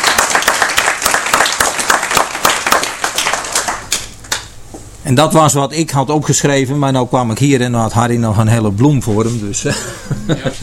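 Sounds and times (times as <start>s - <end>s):
audience applause: 0.0s - 4.5s
speech: 5.0s - 10.6s
laughter: 9.7s - 10.6s.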